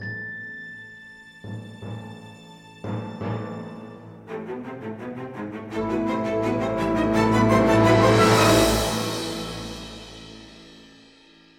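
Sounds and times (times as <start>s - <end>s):
battle music: 4.4s - 11.0s
cymbal: 5.8s - 11.5s.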